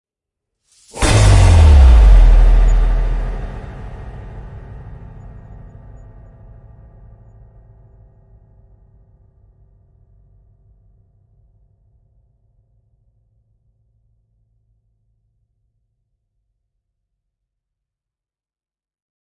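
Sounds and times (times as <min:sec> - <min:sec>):
impacts: 0:01.0 - 0:04.6.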